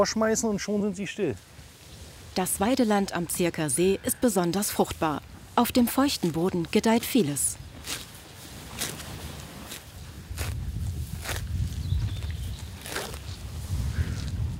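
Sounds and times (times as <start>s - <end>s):
speech: 0.0s - 1.6s, 2.4s - 8.0s
cows tearing off grass while grazing: 6.0s - 14.5s.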